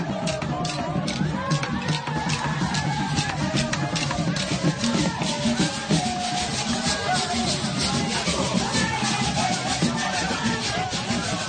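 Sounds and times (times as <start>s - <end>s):
crowd voices welcoming travellers at an airport: 0.0s - 11.4s
rhythmic clapping: 0.0s - 11.4s.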